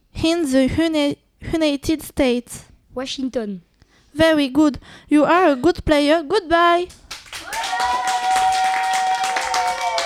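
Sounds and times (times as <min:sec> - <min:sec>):
speech: 0:00.2 - 0:07.5
audience applauding: 0:07.1 - 0:10.0.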